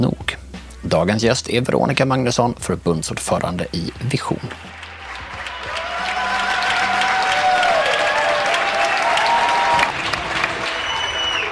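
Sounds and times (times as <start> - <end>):
speech: 0.0 - 4.8
residents clapping from balconies in Spain during the coronavirus lockdown: 4.6 - 11.4.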